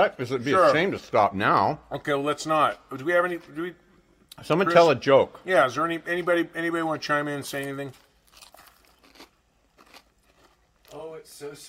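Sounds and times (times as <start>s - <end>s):
speech: 0.0s - 3.8s, 4.4s - 8.0s, 10.9s - 11.6s
eating an ice cream cone: 7.9s - 11.0s.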